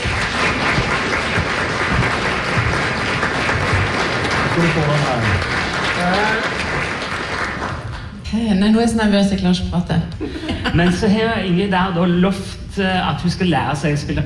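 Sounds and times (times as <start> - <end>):
audience applause in a hall: 0.0 - 8.2
speech: 4.6 - 6.6, 8.3 - 14.2.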